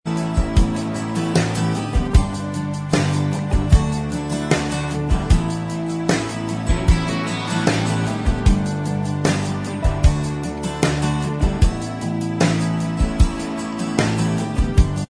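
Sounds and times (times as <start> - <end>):
instrumental music: 0.1 - 15.0.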